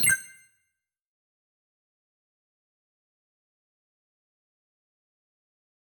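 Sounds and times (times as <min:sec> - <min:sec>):
confirmation tones: 0:00.0 - 0:00.4.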